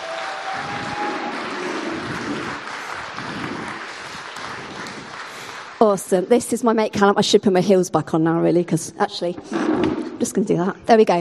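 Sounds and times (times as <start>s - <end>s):
audience applause: 0.0s - 6.1s
speech: 5.8s - 11.1s.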